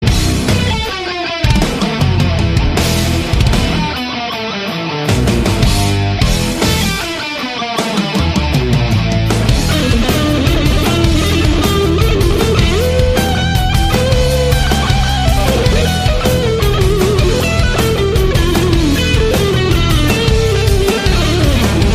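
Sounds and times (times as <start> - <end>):
musical riff: 0.0 - 21.9.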